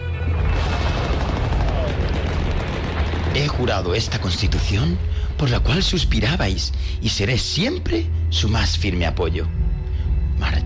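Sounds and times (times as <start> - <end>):
enemy gunfire barrage: 0.3 - 4.4
speech: 3.4 - 9.6.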